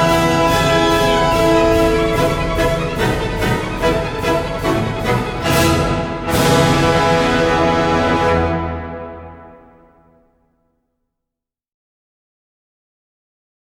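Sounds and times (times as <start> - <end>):
horse race instrumental music: 0.0 - 10.2.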